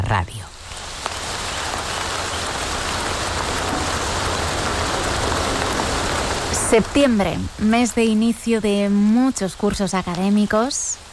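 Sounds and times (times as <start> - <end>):
rain after a storm: 0.0 - 11.1
speech: 0.1 - 0.5, 6.7 - 11.1.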